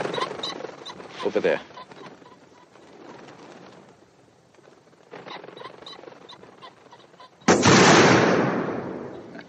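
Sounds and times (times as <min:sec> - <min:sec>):
speech: 0:01.2 - 0:01.7
gunshot in James Bond film as Roger Moore shoots a sniper: 0:07.5 - 0:09.1.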